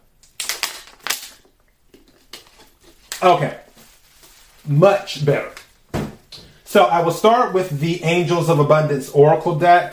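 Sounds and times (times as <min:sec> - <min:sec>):
person taking a sip of water: 0:01.5 - 0:03.1
speech: 0:03.2 - 0:03.6, 0:04.7 - 0:05.6, 0:06.7 - 0:09.9.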